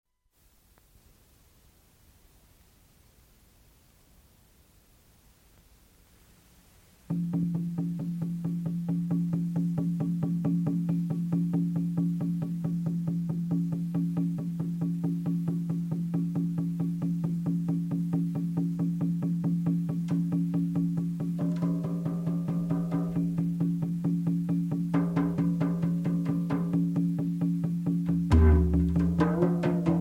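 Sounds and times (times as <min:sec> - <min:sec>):
shamanic journey drum beating: 0:07.1 - 0:29.9.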